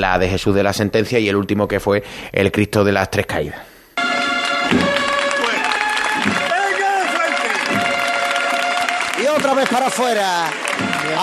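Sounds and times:
speech: 0.0 - 3.7, 9.4 - 11.2
crowd clapping: 4.0 - 11.2.

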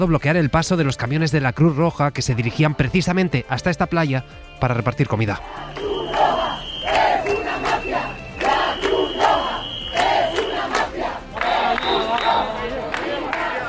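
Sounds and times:
speech: 0.0 - 5.9
protest crowd chanting slogans: 5.4 - 13.6.

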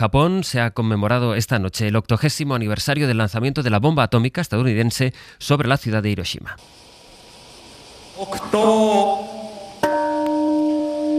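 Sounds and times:
speech: 0.0 - 6.9, 8.2 - 9.4
peace bell ringing: 9.8 - 11.1.

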